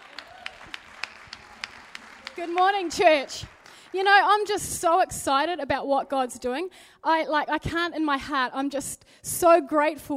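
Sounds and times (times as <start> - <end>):
audience clapping: 0.0 - 4.7
speech: 2.4 - 10.1.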